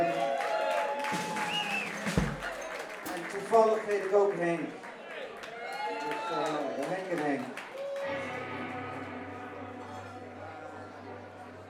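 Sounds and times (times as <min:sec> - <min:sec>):
audience applause: 0:00.0 - 0:09.3
speech: 0:01.1 - 0:01.3, 0:03.5 - 0:04.8.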